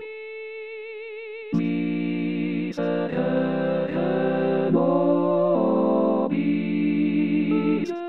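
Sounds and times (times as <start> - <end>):
choir singing: 1.6 - 8.0.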